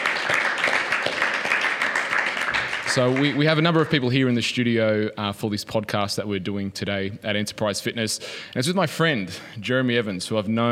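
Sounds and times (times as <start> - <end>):
round of applause: 0.0 - 4.0
speech: 2.9 - 10.7.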